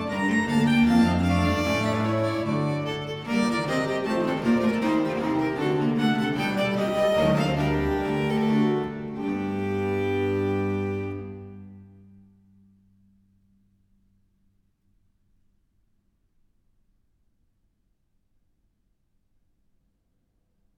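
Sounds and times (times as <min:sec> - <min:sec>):
five-part English viol consort air in G minor: 0:00.0 - 0:12.2.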